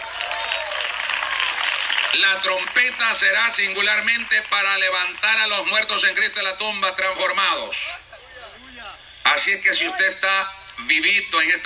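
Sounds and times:
audience applause: 0.0s - 6.2s
speech: 2.1s - 8.0s, 9.3s - 11.6s.

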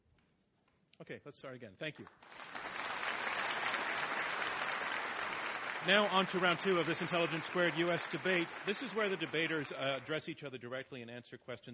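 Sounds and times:
speech: 1.0s - 2.6s, 5.8s - 11.7s
audience applauding at a live Intelligence Squared U.S. debate: 2.1s - 10.2s.

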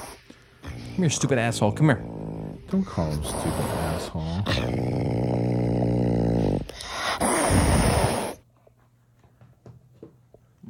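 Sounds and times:
two cats mating: 0.0s - 8.4s
speech: 1.0s - 2.1s, 2.7s - 5.4s.

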